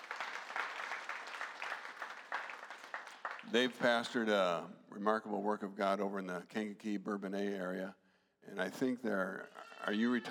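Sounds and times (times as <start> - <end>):
audience applause welcoming guests in a church: 0.0 - 4.0
speech: 3.5 - 10.2.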